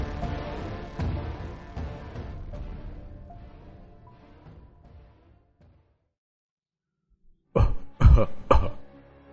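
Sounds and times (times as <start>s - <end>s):
thick wet phlegmy coughs: 7.6s - 8.9s.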